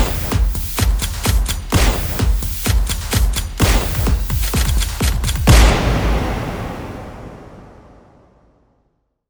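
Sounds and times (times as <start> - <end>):
high-density beat short music for fast flash edits: 0.0 - 7.0
rhythmic gunshots in short music: 0.0 - 7.2.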